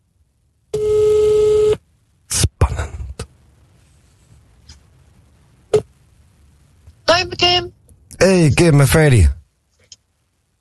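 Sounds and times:
telephone ringing tone heard through a phone: 0:00.7 - 0:01.8
speech: 0:07.2 - 0:09.4.

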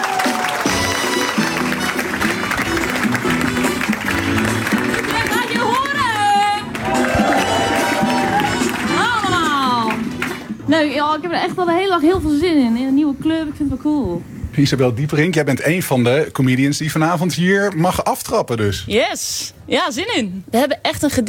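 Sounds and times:
audience applause: 0:00.0 - 0:10.6
speech: 0:11.1 - 0:21.2.

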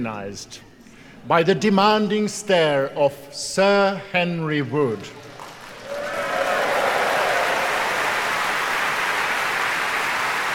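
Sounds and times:
speech: 0:00.0 - 0:05.2
large concert audience applause: 0:05.3 - 0:10.5.

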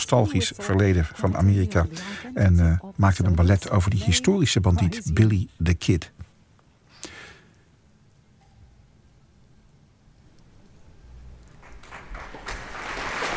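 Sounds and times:
speech: 0:00.1 - 0:06.2
concert audience applauding the conductor: 0:11.5 - 0:13.3.

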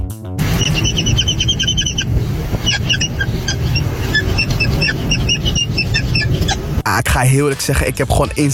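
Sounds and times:
door creaking and squeaking: 0:00.6 - 0:06.6
speech: 0:07.2 - 0:08.5.

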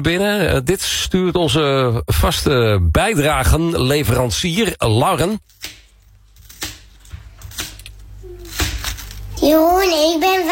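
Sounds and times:
speech: 0:00.0 - 0:05.8, 0:09.5 - 0:10.5
knife cutting into a watermelon: 0:05.4 - 0:09.2
child talking loudly: 0:08.2 - 0:08.6, 0:09.3 - 0:10.5.

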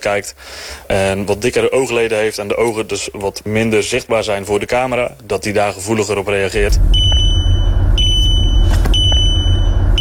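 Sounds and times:
speech: 0:00.0 - 0:07.1
car driver-attention warning beep: 0:06.6 - 0:09.9.

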